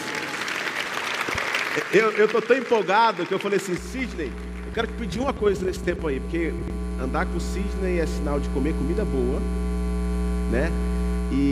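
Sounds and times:
audience applause: 0:00.0 - 0:06.5
speech: 0:01.8 - 0:09.6, 0:10.5 - 0:11.5.

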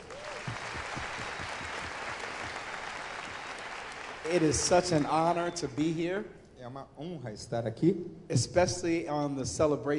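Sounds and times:
audience applause: 0:00.0 - 0:05.3
speech: 0:04.3 - 0:09.9.

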